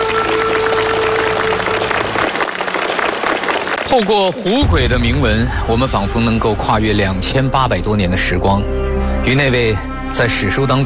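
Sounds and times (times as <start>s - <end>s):
audience applause: 0.0s - 4.6s
speech: 3.9s - 10.8s.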